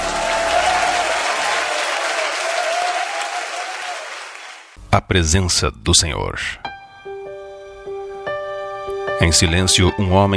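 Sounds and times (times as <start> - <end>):
audience applauding: 0.0 - 4.8
speech: 4.9 - 6.7, 9.2 - 10.3.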